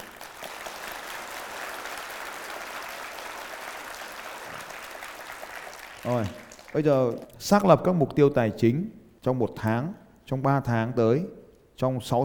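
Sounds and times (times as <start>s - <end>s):
crowd applauding: 0.0s - 7.4s
speech: 6.0s - 12.2s.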